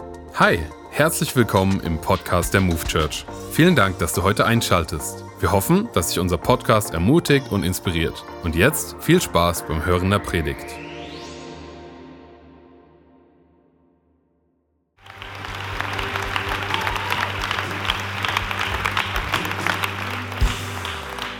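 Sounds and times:
speech: 0.4s - 10.8s
welcoming applause from church audience: 15.0s - 21.3s.

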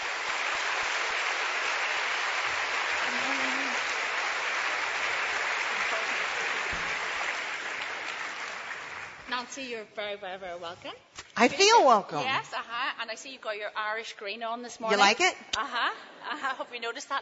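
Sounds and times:
audience applause welcoming a guest speaker: 0.0s - 9.3s
speech: 9.4s - 17.2s.

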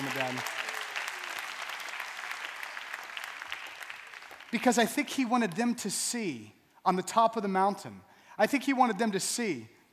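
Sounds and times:
audience applause: 0.0s - 4.7s
speech: 4.5s - 9.8s.

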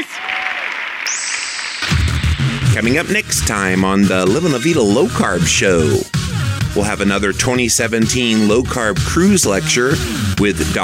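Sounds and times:
audience applause: 0.0s - 2.3s
speech: 2.8s - 6.2s, 6.8s - 10.8s.

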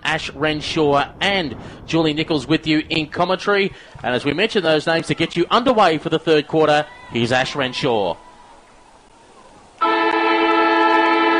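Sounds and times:
speech: 0.1s - 8.2s
horn-like siren signalling start of quarter: 9.8s - 11.3s.

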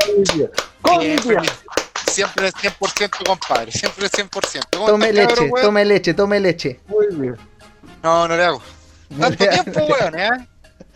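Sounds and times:
applause: 0.0s - 5.4s
speech: 0.1s - 10.5s
laughter: 0.8s - 5.5s, 9.1s - 10.2s.

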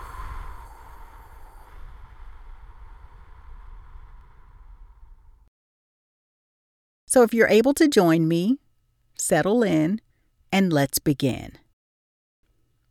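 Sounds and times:
slow exhale through pursed lips during a breathing exercise: 0.0s - 5.5s
speech: 7.1s - 8.6s, 9.2s - 11.6s.

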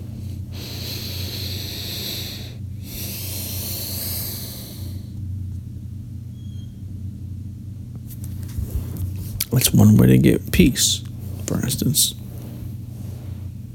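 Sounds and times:
deep breathing during a guided meditation: 0.0s - 5.3s, 8.4s - 13.7s
steady low hum: 0.0s - 13.7s
speech: 9.5s - 12.2s.

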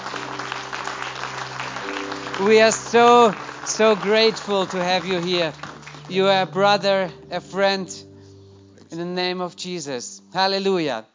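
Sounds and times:
warm audience applause: 0.0s - 6.6s
speech: 2.4s - 8.0s, 8.9s - 11.1s.

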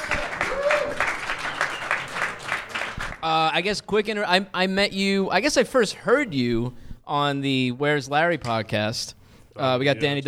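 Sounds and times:
live audience applauding and cheering a podcast guest: 0.0s - 3.3s
speech: 3.2s - 10.2s.

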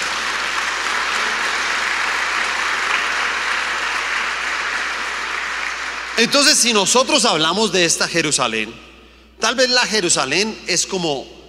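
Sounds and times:
audience applauding: 0.0s - 6.7s
speech: 6.2s - 8.9s, 9.5s - 11.4s.

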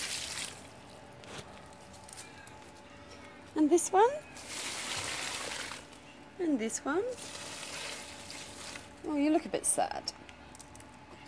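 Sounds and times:
speech: 3.6s - 4.4s, 6.4s - 7.4s, 9.0s - 10.2s
water poured from a bucket onto plants: 4.4s - 5.9s, 7.1s - 8.9s.

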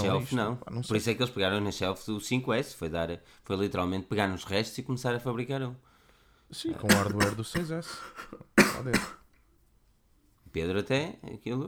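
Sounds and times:
speech: 0.0s - 5.9s, 6.5s - 9.2s, 10.5s - 11.6s
man coughing after choking: 6.6s - 9.3s.

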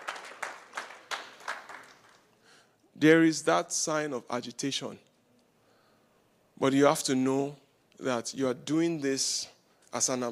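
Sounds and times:
audience clapping: 0.0s - 2.4s
speech: 3.0s - 5.1s, 6.6s - 10.3s.

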